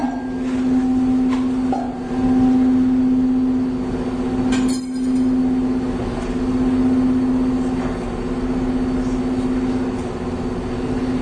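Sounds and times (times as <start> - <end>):
two electronic tones of slightly different frequency beating: 0.0 - 11.1.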